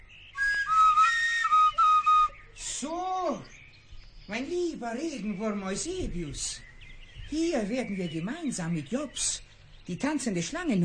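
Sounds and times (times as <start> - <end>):
flute played badly: 0.4 - 2.4
speech: 4.3 - 6.7, 7.3 - 10.8.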